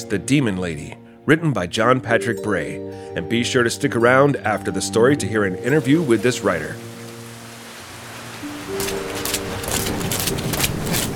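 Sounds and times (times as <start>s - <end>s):
speech: 0.0s - 6.9s
storm with rain: 5.8s - 11.1s.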